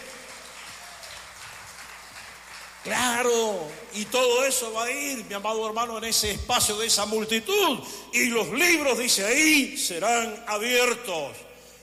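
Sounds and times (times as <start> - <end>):
loud applause from audience: 0.0 - 4.7
speech: 2.8 - 11.5.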